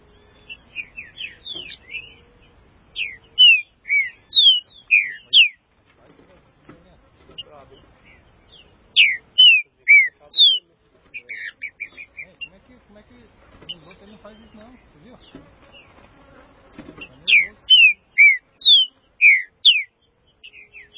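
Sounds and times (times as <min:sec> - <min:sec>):
Green-winged saltator song: 0:03.0 - 0:05.6, 0:09.0 - 0:10.6, 0:17.3 - 0:19.9.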